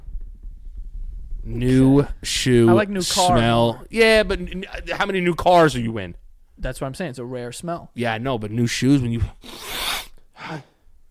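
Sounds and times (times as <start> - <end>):
speech: 1.4 - 9.7, 10.5 - 10.7
aborted sneeze: 9.4 - 10.7.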